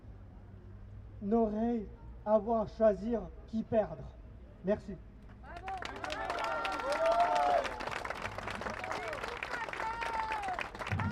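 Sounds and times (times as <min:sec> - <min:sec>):
speech: 0:01.2 - 0:05.1
audience applause: 0:05.5 - 0:11.1.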